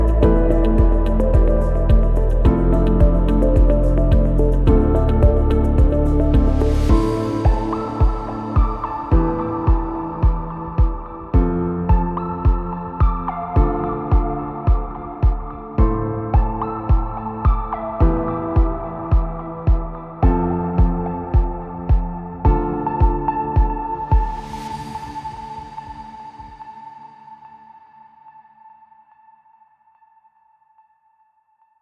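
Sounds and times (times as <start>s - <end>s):
calm ambient sound: 0.0s - 31.7s.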